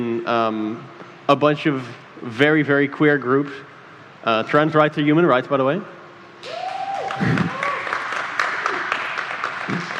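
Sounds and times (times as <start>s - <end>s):
speech: 0.0s - 6.6s
audience applause: 6.5s - 9.9s.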